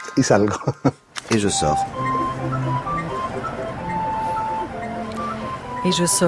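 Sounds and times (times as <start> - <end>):
speech: 0.2 - 2.1, 5.9 - 6.2
emergency alarm signal: 1.5 - 6.2.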